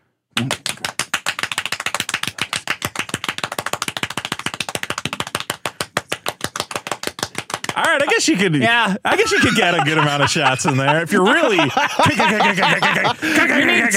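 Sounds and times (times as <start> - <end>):
rapid hand clapping: 0.3 - 8.1
laughter: 7.8 - 13.9
speech: 8.0 - 13.9.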